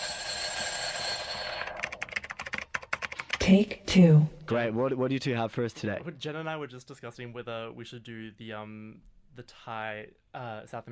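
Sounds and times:
bright sustained ringing tone in podcast audio sting: 0.0s - 1.8s
speech: 3.5s - 10.8s.

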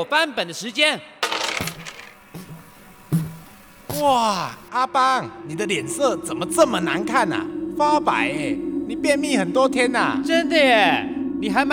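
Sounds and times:
speech: 0.0s - 1.9s, 4.0s - 11.7s
dice being thrown: 1.2s - 2.5s.

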